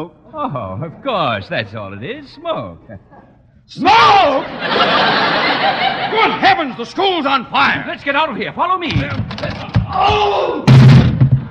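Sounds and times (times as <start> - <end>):
speech: 0.0 - 10.8
laughter: 4.1 - 7.0
man falling to the floor striking the back of his head: 9.8 - 11.4.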